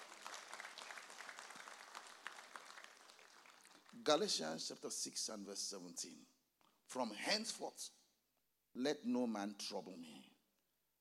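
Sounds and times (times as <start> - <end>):
audience clapping hands: 0.0 - 4.3
speech: 4.0 - 6.3, 6.9 - 8.0, 8.8 - 10.3.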